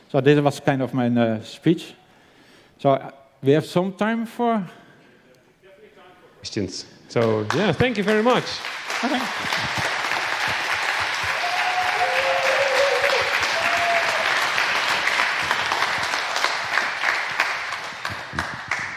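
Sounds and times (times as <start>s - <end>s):
speech: 0.1s - 2.0s, 2.8s - 4.8s, 6.4s - 9.8s
audience applause: 7.2s - 18.9s.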